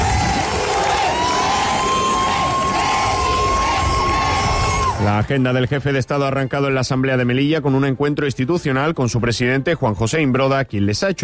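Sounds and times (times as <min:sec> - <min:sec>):
crowd cheering and shouting in a city square: 0:00.0 - 0:05.3
speech: 0:05.0 - 0:11.2.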